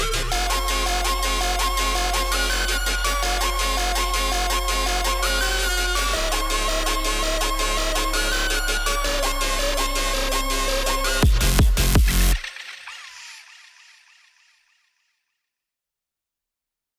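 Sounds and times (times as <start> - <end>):
spooky instrumental music mix: 0.0 - 12.4.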